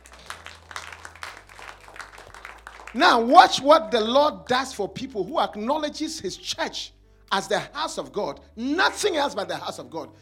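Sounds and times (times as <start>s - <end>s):
audience clapping: 0.0s - 3.6s
speech: 2.9s - 10.2s.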